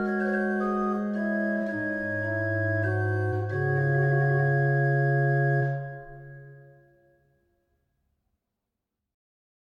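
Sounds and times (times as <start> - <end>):
organ trio piece: 0.0 - 6.7.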